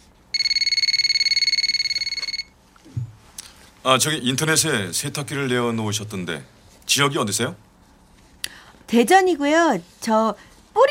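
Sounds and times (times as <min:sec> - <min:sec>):
telephone ringing: 0:00.3 - 0:02.6
speech: 0:03.8 - 0:07.7, 0:08.9 - 0:10.8.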